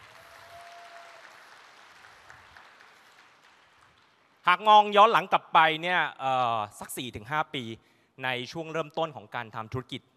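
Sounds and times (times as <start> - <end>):
audience applause: 0.0 - 4.4
speech: 4.5 - 10.1.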